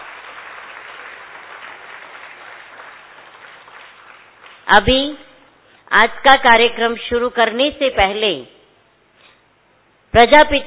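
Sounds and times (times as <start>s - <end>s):
audience clapping: 0.0s - 4.7s
speech: 4.7s - 5.2s, 5.9s - 8.6s, 10.1s - 10.6s.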